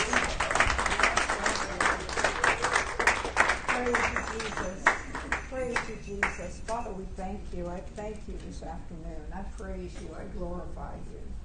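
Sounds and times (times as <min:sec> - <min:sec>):
audience hand clapping: 0:00.0 - 0:06.4
speech: 0:06.9 - 0:11.4.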